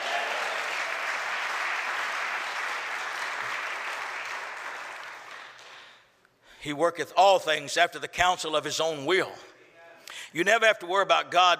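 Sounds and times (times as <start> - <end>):
audience clapping hands: 0.0 - 6.1
speech: 6.6 - 9.5, 10.3 - 11.5.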